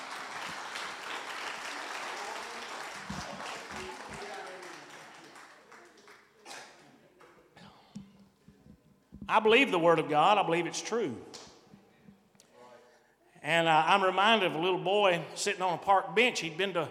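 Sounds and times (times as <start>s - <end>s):
audience clapping together: 0.0s - 7.4s
speech: 9.3s - 11.4s, 13.5s - 16.8s.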